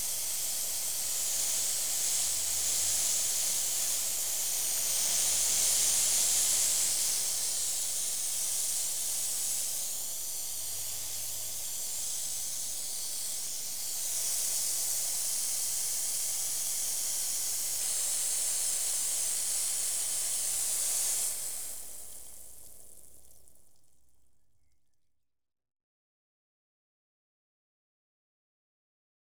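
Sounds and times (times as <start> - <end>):
hose pipe: 0.0 - 23.8.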